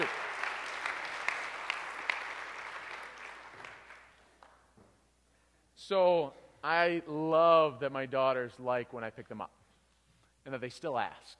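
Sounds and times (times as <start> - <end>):
people clapping: 0.0 - 4.7
speech: 5.9 - 9.6, 10.5 - 11.3.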